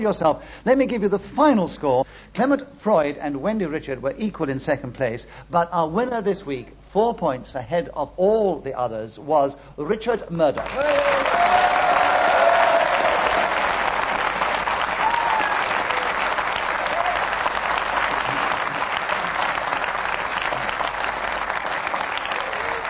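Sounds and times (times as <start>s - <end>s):
speech: 0.0s - 11.8s
panel game show studio audience applauding the winner: 10.5s - 22.8s.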